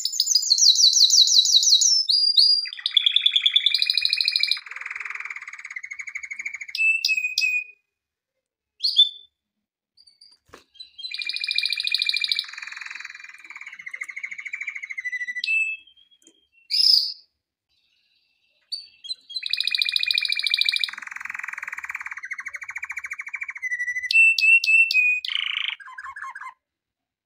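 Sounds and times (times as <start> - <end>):
canary song: 0.0 - 8.0, 8.8 - 9.4, 10.0 - 26.8.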